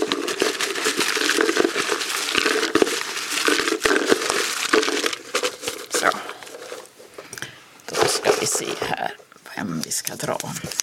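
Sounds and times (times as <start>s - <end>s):
paper slips rustling and crinkling as they're stirred in a jar: 0.0s - 6.9s, 7.9s - 9.0s
speech: 8.4s - 10.8s.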